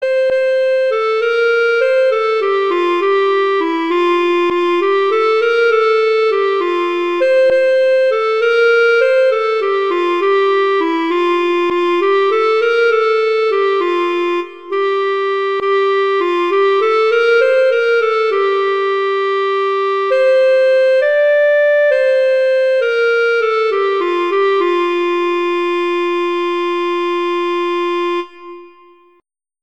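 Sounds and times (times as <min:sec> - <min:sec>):
Christmas carol: 0:00.0 - 0:29.2.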